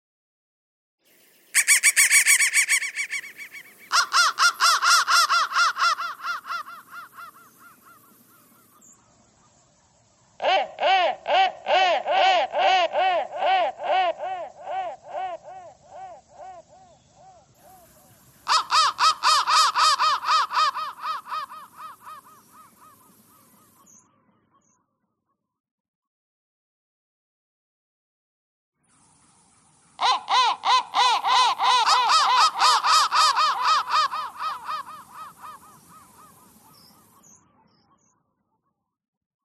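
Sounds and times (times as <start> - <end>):
crow: 1.5 - 9.1, 10.4 - 25.0, 30.0 - 38.7.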